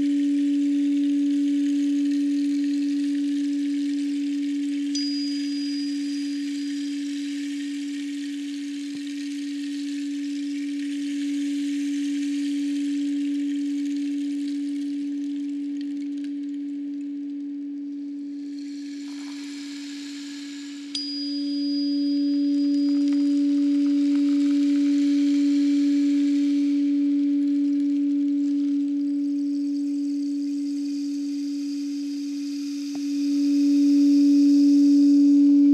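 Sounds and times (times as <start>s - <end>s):
tuning fork ringing for sound healing: 0.0s - 35.7s.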